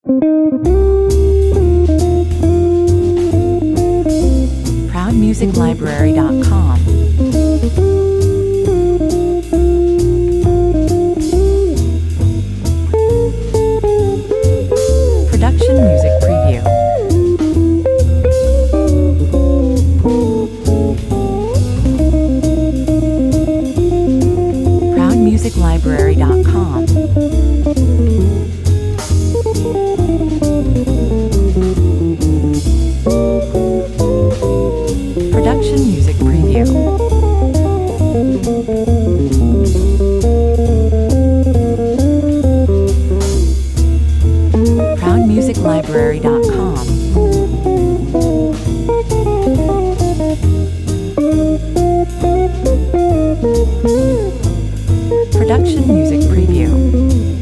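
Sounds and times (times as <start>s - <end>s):
jazz session: 0.0s - 57.4s.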